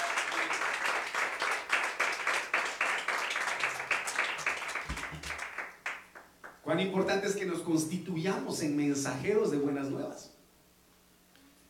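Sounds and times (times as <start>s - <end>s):
audience clapping: 0.0s - 6.6s
speech: 6.7s - 10.3s.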